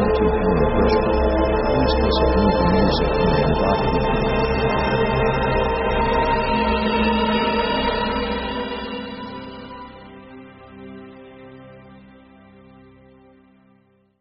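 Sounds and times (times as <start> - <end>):
dark atmosphere: 0.0 - 10.6.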